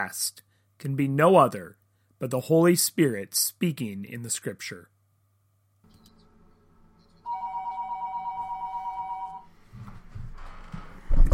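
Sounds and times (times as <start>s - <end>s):
speech: 0.0s - 4.9s
mobile phone ringing: 7.0s - 9.5s.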